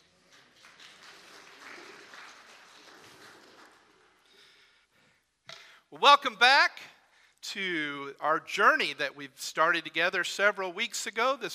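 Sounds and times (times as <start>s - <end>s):
church congregation applauding after a scripture reading: 0.0s - 4.7s
speech: 5.9s - 11.5s.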